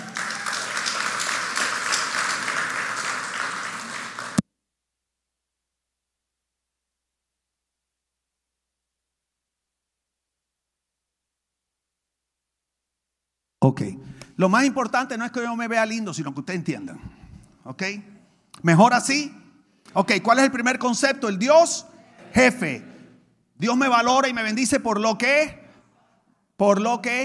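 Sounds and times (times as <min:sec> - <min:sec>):
audience applause: 0:00.0 - 0:04.4
speech: 0:13.6 - 0:22.9, 0:23.6 - 0:25.6, 0:26.6 - 0:27.2.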